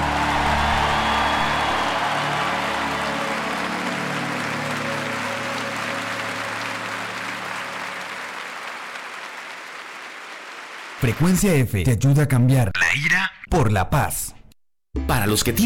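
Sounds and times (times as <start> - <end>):
audience applause: 0.0 - 11.6
speech: 11.0 - 14.4, 15.0 - 15.6.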